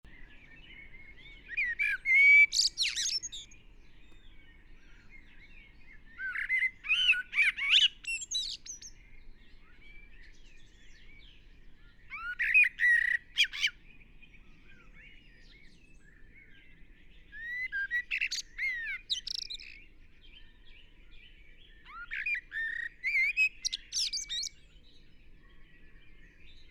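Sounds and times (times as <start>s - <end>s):
common blackbird song: 0.0s - 26.6s.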